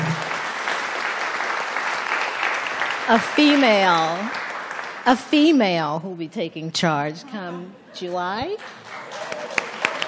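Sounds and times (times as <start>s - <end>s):
audience applause: 0.0s - 5.0s, 8.8s - 10.0s
speech: 3.1s - 4.4s, 5.0s - 8.8s.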